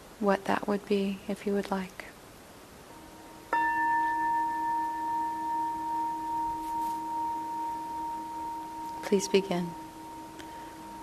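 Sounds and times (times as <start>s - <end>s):
speech: 0.2s - 2.0s, 9.1s - 9.8s
meditation bell ringing: 3.5s - 11.0s.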